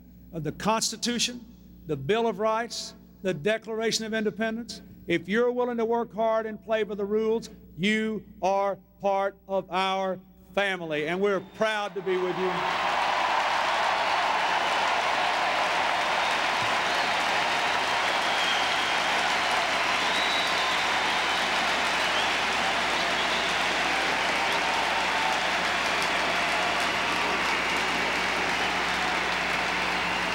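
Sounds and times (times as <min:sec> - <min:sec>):
speech: 0:00.3 - 0:12.9
large crowd cheering and applauding: 0:11.9 - 0:30.3.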